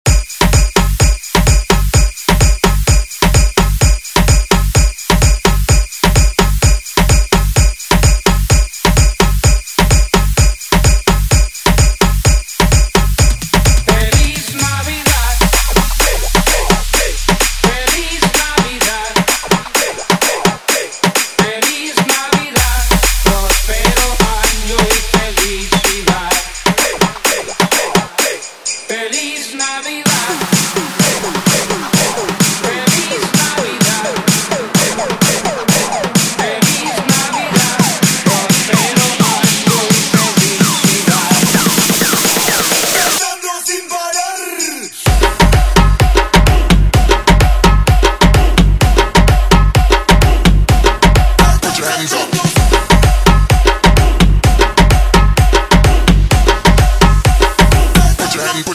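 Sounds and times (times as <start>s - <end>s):
tribal music: 0.1s - 29.2s, 30.0s - 58.7s.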